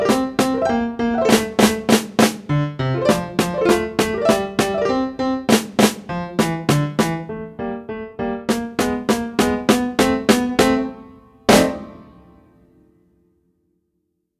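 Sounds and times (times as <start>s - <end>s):
snare drum: 0.0s - 4.9s, 5.5s - 7.3s, 8.5s - 12.2s
piano: 0.0s - 13.3s.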